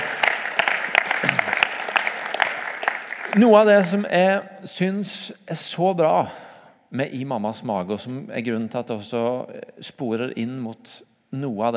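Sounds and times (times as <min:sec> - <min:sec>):
audience clapping: 0:00.0 - 0:04.1
speech: 0:03.3 - 0:11.7.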